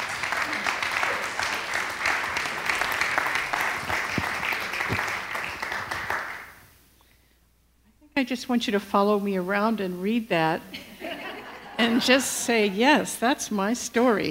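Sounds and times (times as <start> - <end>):
audience applause welcoming a speaker: 0.0 - 6.6
speech: 8.2 - 10.8, 12.0 - 14.3.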